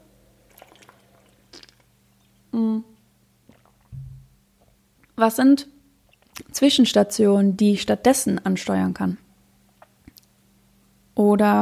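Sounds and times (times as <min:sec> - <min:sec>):
person sipping a drink: 0:00.5 - 0:02.3, 0:03.4 - 0:04.1
speech: 0:05.2 - 0:05.7, 0:06.6 - 0:09.2, 0:11.2 - 0:11.5.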